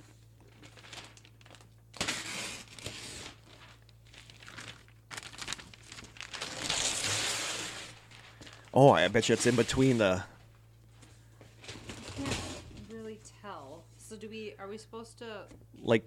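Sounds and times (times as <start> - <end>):
package wrapped in duct tape being opened: 0.5 - 8.7
speech: 8.8 - 10.4, 14.6 - 16.0.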